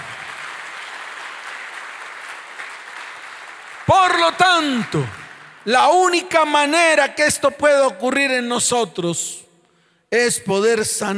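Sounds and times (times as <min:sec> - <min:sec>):
applause: 0:00.0 - 0:06.5
speech: 0:03.9 - 0:09.4, 0:10.1 - 0:11.1.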